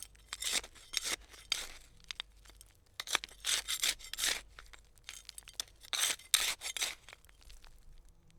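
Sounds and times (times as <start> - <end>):
digging with trowel: 0.0 - 1.9, 3.0 - 7.5.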